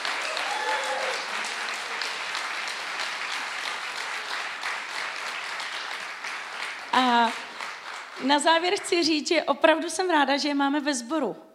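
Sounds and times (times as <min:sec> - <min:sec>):
audience applause: 0:00.0 - 0:09.0
speech: 0:08.2 - 0:11.5.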